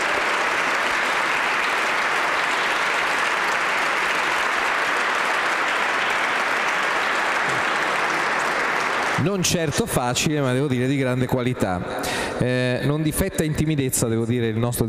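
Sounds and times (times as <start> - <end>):
audience applause: 0.0 - 10.2
speech: 9.2 - 14.8.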